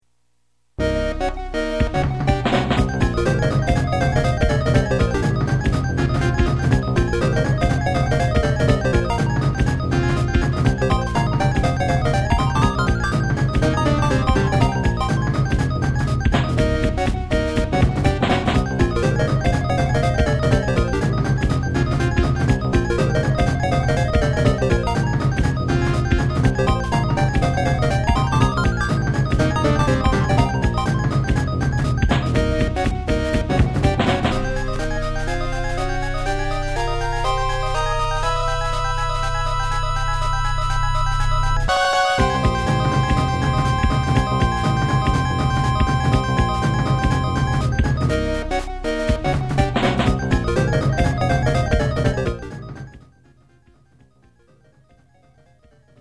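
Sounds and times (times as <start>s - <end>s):
techno music: 0.8s - 55.9s.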